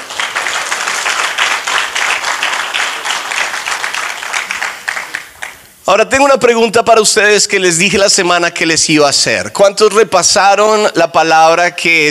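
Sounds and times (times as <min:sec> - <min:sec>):
audience applause: 0:00.0 - 0:05.6
speech: 0:05.9 - 0:12.0.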